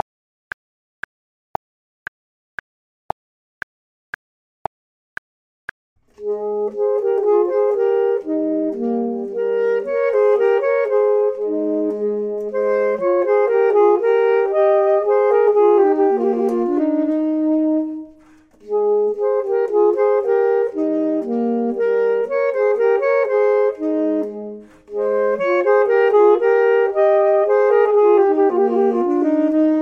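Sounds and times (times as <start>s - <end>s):
clarinet: 6.1s - 29.8s
saxophone: 6.1s - 29.8s.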